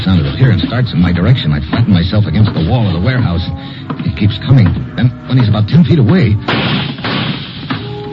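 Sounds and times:
speech: 0:00.1 - 0:06.6
gunshots: 0:06.4 - 0:07.9.

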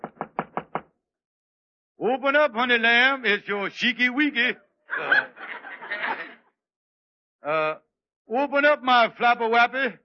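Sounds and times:
knocking on a compartment door: 0:00.0 - 0:00.9
speech: 0:02.0 - 0:05.3, 0:07.4 - 0:10.0
laughter: 0:04.9 - 0:06.4.

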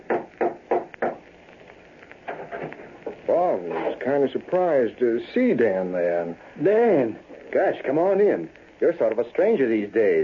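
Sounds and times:
knocking on a wooden door: 0:00.1 - 0:01.2
speech: 0:04.1 - 0:10.2.

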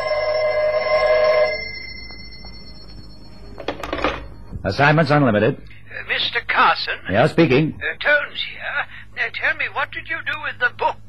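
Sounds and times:
telephone bell ringing: 0:00.0 - 0:04.4
speech: 0:04.6 - 0:11.0.

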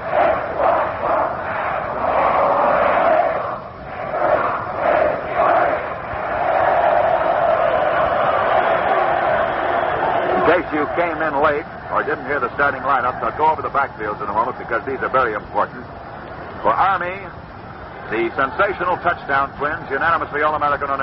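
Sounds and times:
large football crowd chanting in unison: 0:00.0 - 0:13.4
speech: 0:10.7 - 0:16.0, 0:16.6 - 0:17.4, 0:18.1 - 0:21.0.

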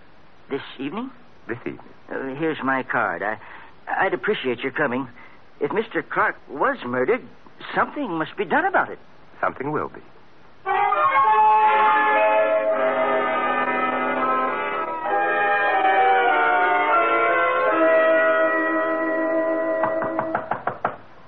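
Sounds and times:
speech: 0:00.5 - 0:11.0
sustained ringing musical tones: 0:10.6 - 0:20.4
knocking at a gate: 0:19.8 - 0:21.0.

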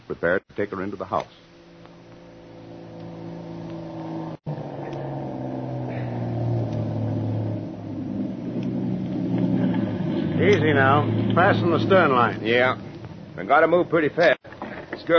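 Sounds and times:
speech: 0:00.1 - 0:01.5, 0:10.6 - 0:14.4
motor launch engine pulling into dock: 0:01.5 - 0:14.2.

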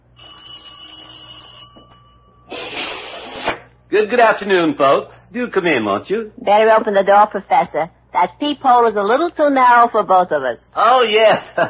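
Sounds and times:
doorbell ringing with a metallic electric tone: 0:00.2 - 0:02.5
speech: 0:03.9 - 0:11.6.

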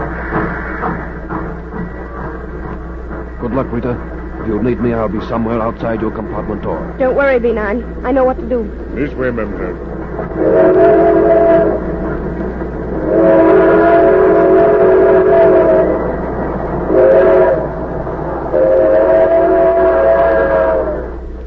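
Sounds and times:
train roaring along at night: 0:00.0 - 0:21.4
speech: 0:03.4 - 0:11.9.

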